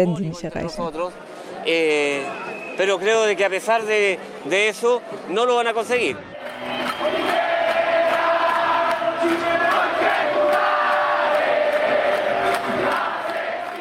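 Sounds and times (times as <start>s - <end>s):
speech: 0.0s - 7.3s
protest crowd chanting slogans: 7.0s - 13.7s.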